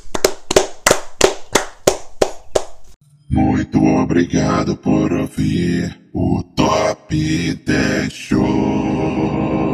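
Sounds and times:
hand clapping applause: 0.0s - 2.7s
speech: 3.3s - 9.6s.

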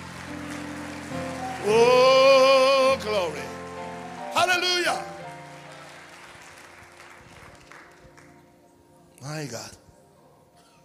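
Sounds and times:
audience applause: 0.0s - 8.5s
speech: 1.6s - 1.9s, 4.5s - 5.1s, 9.3s - 9.8s.

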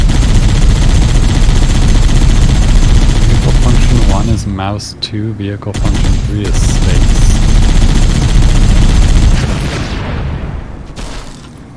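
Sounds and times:
rapid continuous gunfire in a video game: 0.0s - 4.4s, 5.8s - 10.1s
speech: 4.6s - 7.2s.

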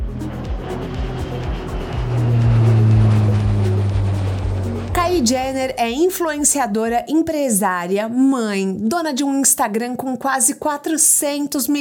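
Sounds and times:
private jet engine roaring on takeoff: 0.0s - 7.0s
droning hum: 0.0s - 7.1s
speech: 5.2s - 11.8s.

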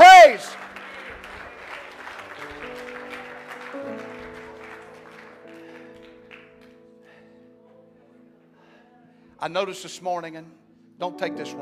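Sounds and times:
audience clapping hands: 0.0s - 7.3s
sustained organ chords: 0.0s - 8.4s
speech: 9.4s - 11.5s.

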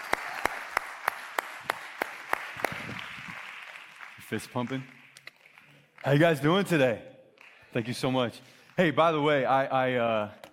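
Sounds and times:
church audience applauding to welcome new youth pastor: 0.0s - 6.7s
steady evenly spaced claps: 0.0s - 9.0s
speech: 4.3s - 5.0s, 6.0s - 7.1s, 7.7s - 10.4s.

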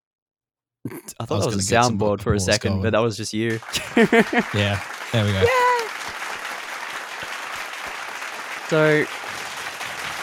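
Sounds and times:
speech: 0.8s - 5.7s, 8.7s - 9.2s
laughter: 1.2s - 2.7s, 3.5s - 5.9s
clapping: 3.5s - 10.2s.

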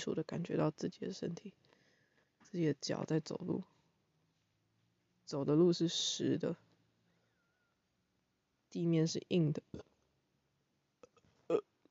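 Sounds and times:
speech: 0.0s - 1.6s, 2.4s - 3.7s, 5.3s - 6.7s, 8.7s - 9.9s, 11.5s - 11.7s
breathy sounds: 1.6s - 2.4s
hiccup: 11.1s - 11.7s.

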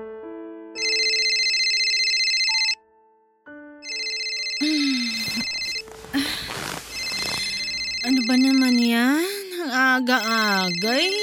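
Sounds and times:
phone electronic ringtone for an incoming call: 0.8s - 2.8s, 3.8s - 5.9s, 6.8s - 9.1s, 10.2s - 11.2s
speech: 10.0s - 11.2s.

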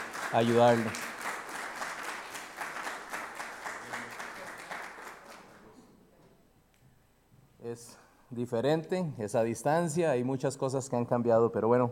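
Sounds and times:
audience applause: 0.0s - 5.6s
speech: 0.3s - 1.0s, 7.7s - 11.8s.

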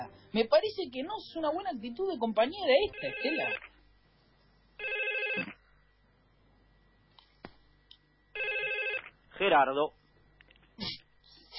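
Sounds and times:
speech: 0.1s - 3.7s, 4.8s - 5.6s, 9.4s - 10.0s
telephone ringing: 2.8s - 3.7s, 4.8s - 5.6s, 8.4s - 9.1s.

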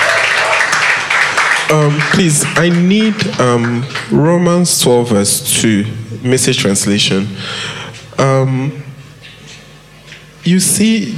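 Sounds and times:
audience clapping: 0.0s - 4.3s
speech: 1.7s - 8.9s, 10.4s - 11.1s.

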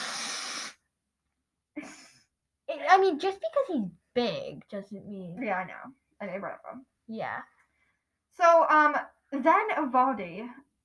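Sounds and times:
loud nose blowing: 0.0s - 0.9s
speech: 2.8s - 7.6s, 8.4s - 10.8s.

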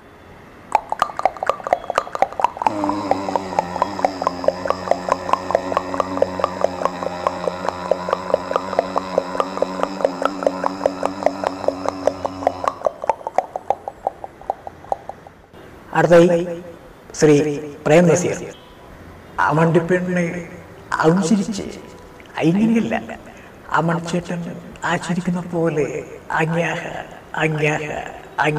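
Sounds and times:
voice imitating a horse with rhythmic tongue clicks: 0.7s - 15.4s
speech: 2.7s - 3.1s, 16.0s - 18.6s, 19.5s - 23.2s, 23.8s - 28.5s.

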